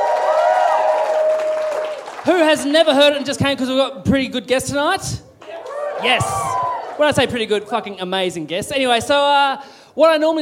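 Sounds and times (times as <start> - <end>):
high whooping voices: 0.0 - 2.0, 5.5 - 7.2
audience cheering and applauding: 0.0 - 2.7, 5.4 - 7.4
speech: 2.3 - 5.2, 6.0 - 10.3.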